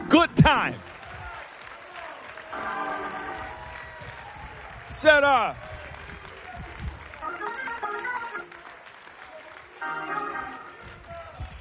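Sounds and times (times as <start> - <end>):
audience clapping hands: 0.1 - 11.5
speech: 0.2 - 1.0, 5.0 - 5.7.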